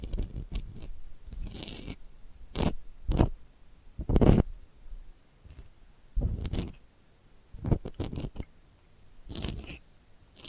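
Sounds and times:
delicate dry scratching: 0:00.0 - 0:03.4, 0:04.0 - 0:04.5, 0:05.4 - 0:06.8, 0:07.6 - 0:08.5, 0:09.3 - 0:09.8.

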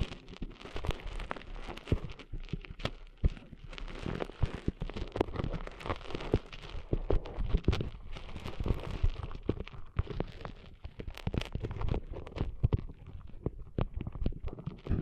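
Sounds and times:
crackling scratches of sand being cleaned out of an ear: 0:00.0 - 0:15.0.

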